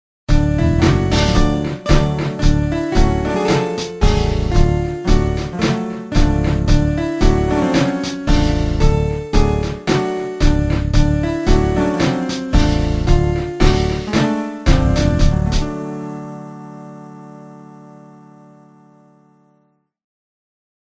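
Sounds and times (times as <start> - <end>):
backing track: 0.3 - 16.0.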